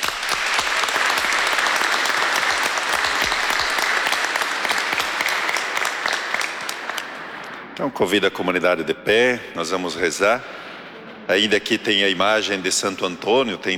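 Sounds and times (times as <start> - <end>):
audience applause welcoming children: 0.0 - 7.7
speech: 7.8 - 10.6, 11.3 - 13.7.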